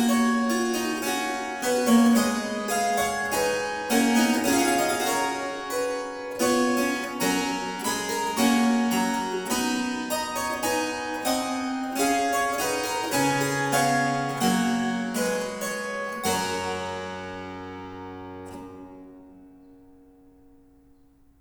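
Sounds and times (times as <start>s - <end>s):
quodlibet played on harpsichord: 0.0s - 20.9s.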